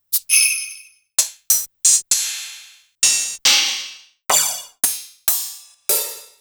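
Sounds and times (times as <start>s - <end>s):
Medeli DD-5060: 0.1s - 5.0s.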